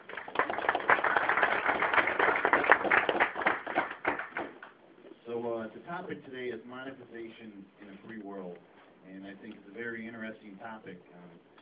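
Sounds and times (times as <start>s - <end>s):
audience applause: 0.0s - 4.7s
speech: 6.0s - 11.5s.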